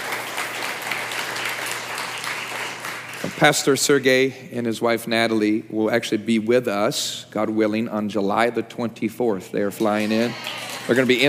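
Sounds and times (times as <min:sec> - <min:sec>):
round of applause: 0:00.0 - 0:03.8, 0:10.3 - 0:11.2
speech: 0:03.4 - 0:11.2.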